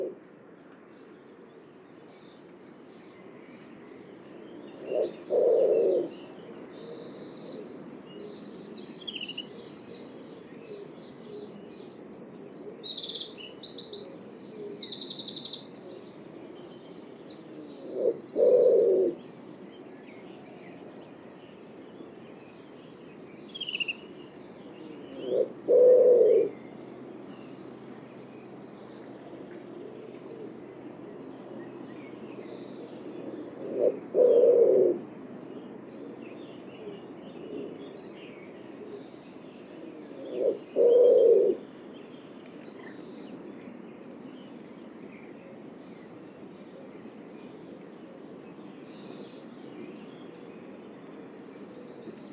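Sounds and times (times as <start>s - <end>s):
bird giving low hollow coo: 0.0s - 0.2s, 4.2s - 11.8s, 12.5s - 19.3s, 23.6s - 26.7s, 29.3s - 31.2s, 32.6s - 35.1s, 36.8s - 41.6s.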